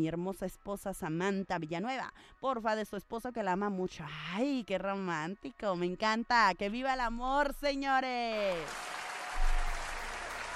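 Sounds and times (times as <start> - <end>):
speech: 0.0 - 8.9
applause: 8.4 - 10.5.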